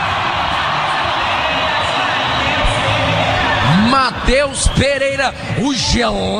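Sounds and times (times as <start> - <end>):
whoops and shouts: 0.0 - 6.0
stadium crowd cheering: 0.0 - 6.3
speech: 4.0 - 6.3.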